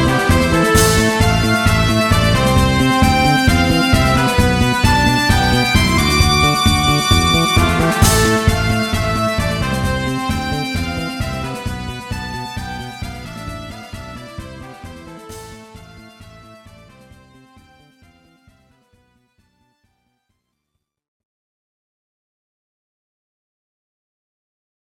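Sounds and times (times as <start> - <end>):
fanfare: 0.0 - 18.2.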